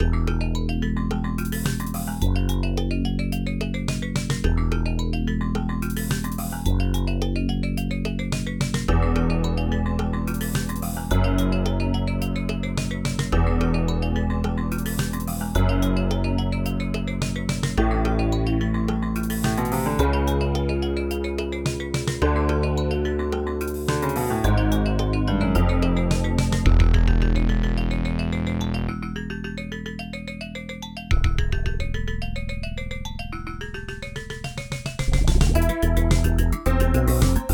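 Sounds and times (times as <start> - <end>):
ambient music: 0.0 - 37.5.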